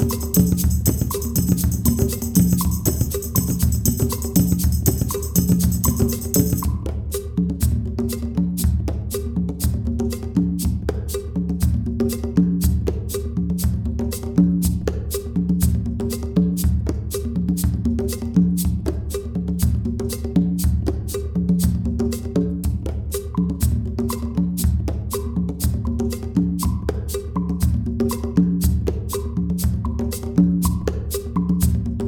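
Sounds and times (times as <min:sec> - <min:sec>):
kpanlogo percussion: 0:00.0 - 0:32.0.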